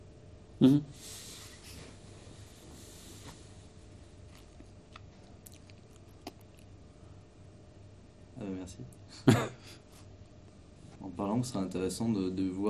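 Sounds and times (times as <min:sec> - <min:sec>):
amplifier cooling fan hum: 0:00.0 - 0:12.6
speech: 0:00.6 - 0:01.2, 0:08.7 - 0:09.8, 0:11.2 - 0:12.6.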